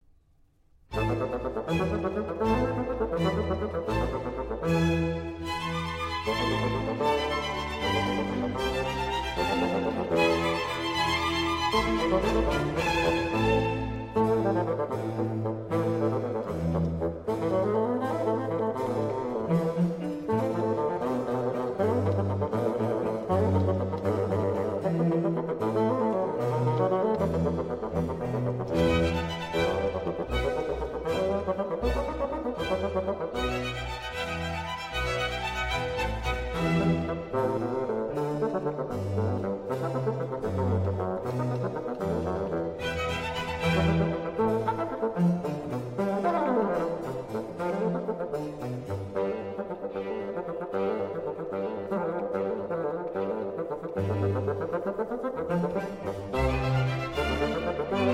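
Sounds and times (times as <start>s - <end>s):
bassoon concerto allegro in A minor: 0.9s - 58.1s.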